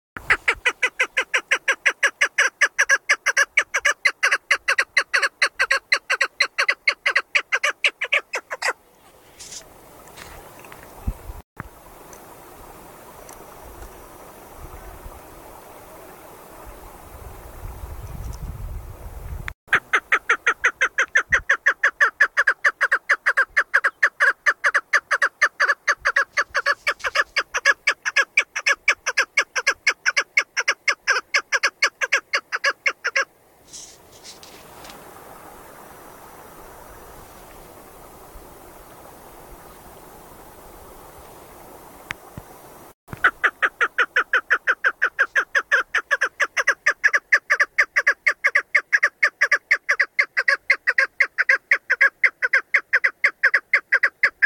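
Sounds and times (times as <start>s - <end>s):
female partridge calling: 0.2s - 8.8s, 19.7s - 33.3s, 43.1s - 54.4s.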